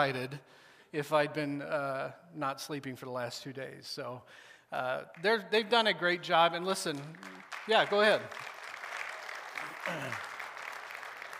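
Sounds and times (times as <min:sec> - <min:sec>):
speech: 0:00.0 - 0:08.6, 0:09.8 - 0:10.3
audience clapping: 0:05.1 - 0:05.4, 0:06.7 - 0:11.3.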